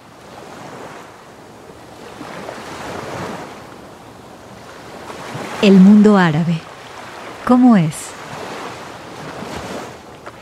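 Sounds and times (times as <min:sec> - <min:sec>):
ocean waves of the Persian Gulf: 0:00.0 - 0:10.4
speech: 0:05.6 - 0:06.7, 0:07.5 - 0:08.0.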